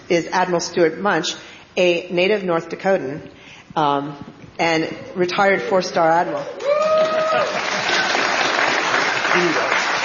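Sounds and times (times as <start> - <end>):
speech: 0.1 - 6.7, 7.3 - 8.0, 9.3 - 9.8
audience applause: 6.6 - 10.0.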